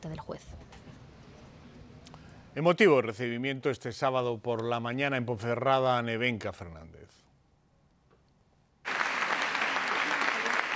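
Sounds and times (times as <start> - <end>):
speech: 0.0 - 0.8, 2.6 - 7.2
loud crowd applause: 8.9 - 10.7.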